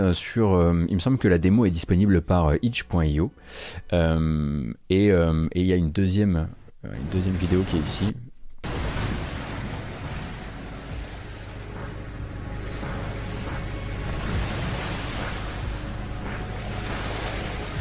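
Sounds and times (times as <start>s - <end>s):
speech: 0.0s - 8.2s
ocean waves in the video game What Below: 7.0s - 17.7s.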